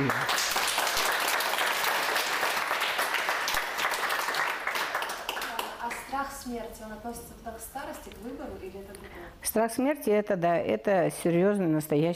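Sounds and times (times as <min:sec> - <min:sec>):
audience applause: 0:00.0 - 0:05.7
speech: 0:06.5 - 0:12.1.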